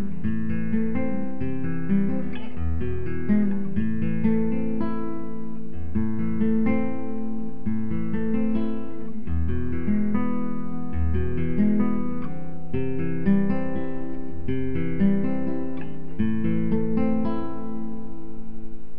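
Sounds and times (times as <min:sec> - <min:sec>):
guitar playing chord exercise: 0:00.0 - 0:18.9.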